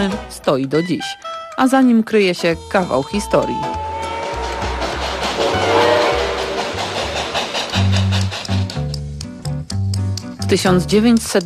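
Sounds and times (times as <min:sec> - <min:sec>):
speech: 0:00.0 - 0:03.8, 0:10.5 - 0:11.4
sustained horn-like pitches: 0:02.6 - 0:07.2
train rumble at a large railway station in Poland: 0:02.6 - 0:09.4.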